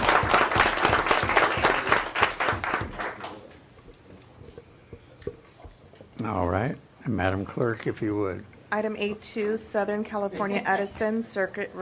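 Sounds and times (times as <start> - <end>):
audience applause: 0.0 - 3.4
speech: 7.2 - 11.8.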